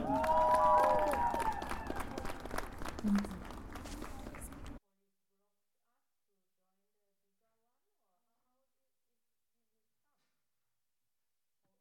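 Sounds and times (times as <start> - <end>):
audience applause welcoming a speaker at a Kurdish students' demonstration in Berlin: 0.0 - 4.8.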